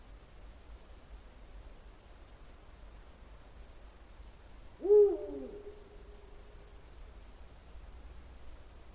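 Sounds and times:
night birds: 0.6 - 8.9
Bubo bubo eagle owl: 4.8 - 6.4.

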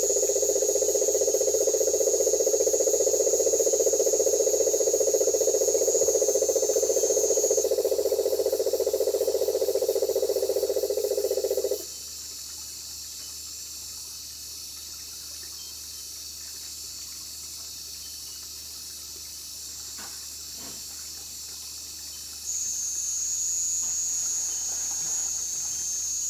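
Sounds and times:
marine toad Rhinella marina: 0.0 - 11.9, 22.5 - 26.2.

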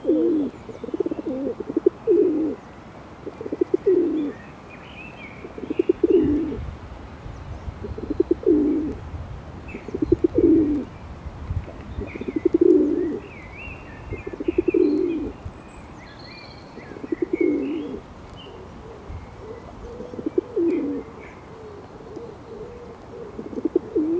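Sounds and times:
Columba livia rock dove: 0.0 - 2.6, 3.2 - 4.4, 5.4 - 6.6, 7.9 - 9.0, 9.7 - 10.9, 11.7 - 13.3, 14.2 - 15.4, 16.8 - 24.1.

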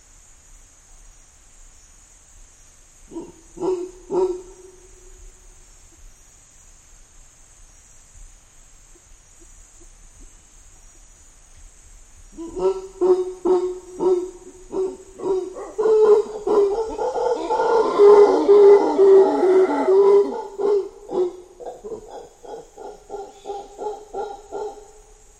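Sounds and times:
mantled howler monkey: 3.1 - 5.4, 12.3 - 25.3.

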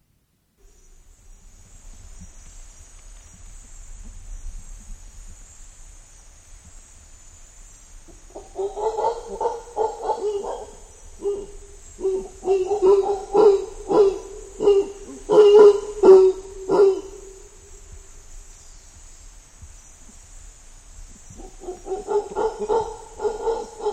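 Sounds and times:
mantled howler monkey: 8.1 - 17.7, 21.4 - 23.9.

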